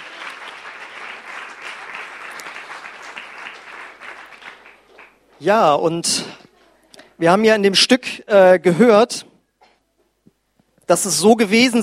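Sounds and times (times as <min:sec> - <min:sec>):
small round of applause: 0:00.0 - 0:05.4
speech: 0:05.4 - 0:06.4, 0:07.2 - 0:09.3, 0:10.9 - 0:11.8.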